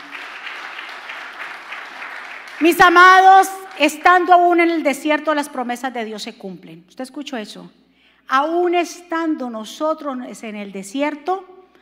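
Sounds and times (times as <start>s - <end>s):
audience applause: 0.0s - 2.7s
speech: 2.6s - 11.8s.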